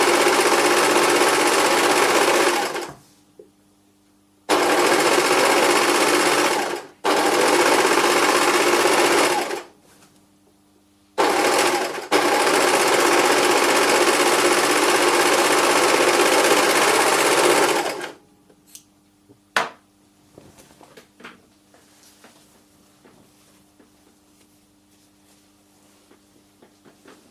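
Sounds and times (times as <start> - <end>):
home sewing machine: 0.0 - 3.0, 4.5 - 9.7, 11.2 - 18.2.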